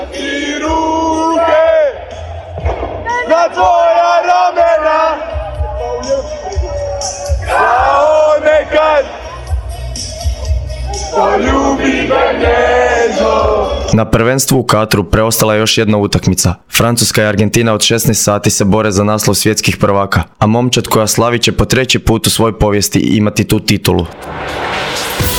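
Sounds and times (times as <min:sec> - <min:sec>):
fans cheering and shouting: 0:00.0 - 0:13.9
large crowd of fans singing and chanting: 0:00.0 - 0:14.0
speech: 0:14.0 - 0:25.0.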